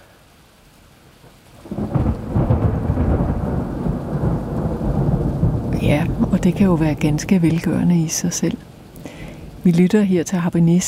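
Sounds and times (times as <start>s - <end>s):
thunderclap: 1.6s - 9.6s
speech: 6.4s - 8.7s, 9.6s - 10.8s.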